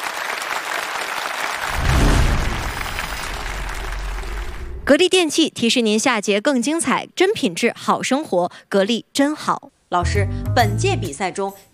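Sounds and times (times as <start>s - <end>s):
audience applause: 0.0s - 4.9s
speech: 4.9s - 11.7s.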